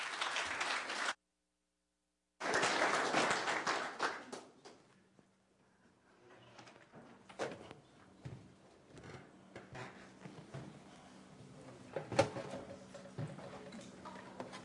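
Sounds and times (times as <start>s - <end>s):
audience applause welcoming a speaker at a Canadian Conference: 0.0s - 1.2s, 2.4s - 4.8s.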